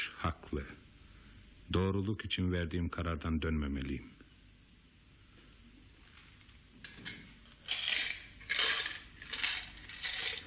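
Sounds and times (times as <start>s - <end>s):
speech: 0.2s - 0.8s, 1.7s - 4.2s
small change rattling in two piggy banks: 7.6s - 10.4s.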